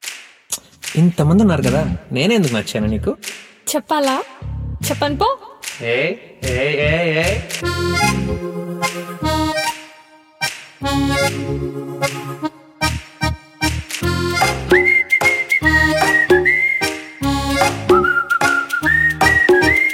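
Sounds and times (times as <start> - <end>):
speech: 1.0 - 8.6, 11.1 - 12.5
instrumental accompaniment: 7.6 - 19.9
person whistling a bright melody: 14.7 - 19.9.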